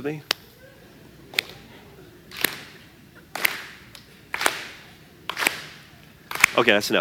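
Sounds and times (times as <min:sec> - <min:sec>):
hands clapping to a beat: 0:02.3 - 0:06.6.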